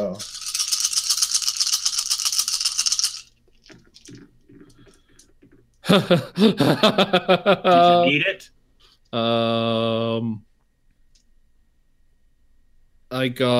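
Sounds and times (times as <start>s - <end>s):
several dice being rolled: 0.2s - 5.6s
laughter: 5.8s - 8.2s
speech: 5.9s - 8.5s, 9.1s - 10.5s, 13.1s - 13.5s
loud voice reacting: 7.7s - 8.5s.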